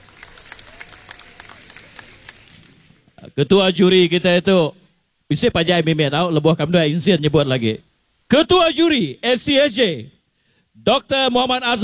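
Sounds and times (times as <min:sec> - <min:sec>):
thunderous applause for a judge: 0:00.0 - 0:02.9
speech: 0:03.4 - 0:10.2, 0:10.8 - 0:11.8.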